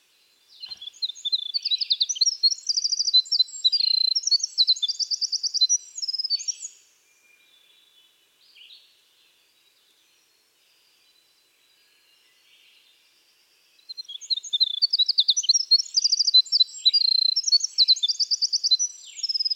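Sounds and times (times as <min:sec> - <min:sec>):
winter wren Troglodytes hiemalis singing trills: 0:00.5 - 0:06.8, 0:13.8 - 0:19.5.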